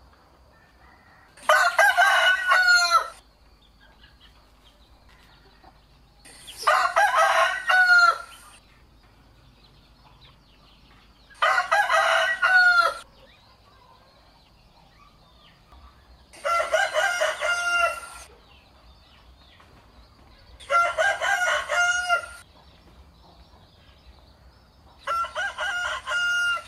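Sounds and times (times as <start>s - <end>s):
rooster crowing: 0.5s - 3.2s, 6.6s - 8.6s, 11.4s - 13.1s, 16.4s - 18.3s, 20.6s - 22.4s, 25.0s - 26.6s.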